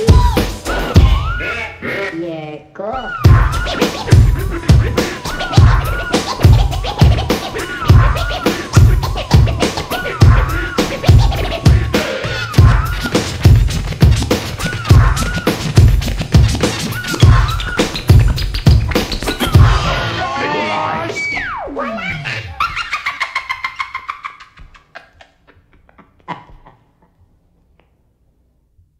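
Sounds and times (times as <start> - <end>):
groove music: 0.0 - 2.2, 2.9 - 22.7.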